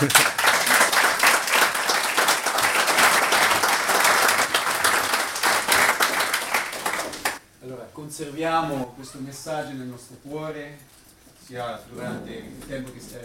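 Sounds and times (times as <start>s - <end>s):
speech: 0.0s - 0.2s, 8.2s - 13.2s
audience applause: 0.0s - 7.4s.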